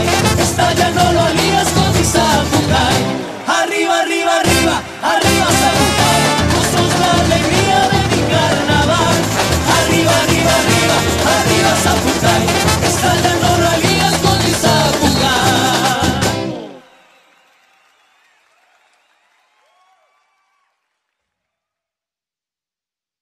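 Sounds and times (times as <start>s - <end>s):
march music: 0.0s - 3.6s, 4.4s - 16.7s.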